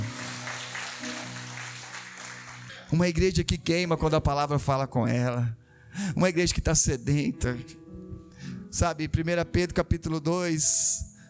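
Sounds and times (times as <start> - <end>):
audience applauding: 0.0 - 3.2
speech: 2.9 - 7.8, 8.7 - 11.1.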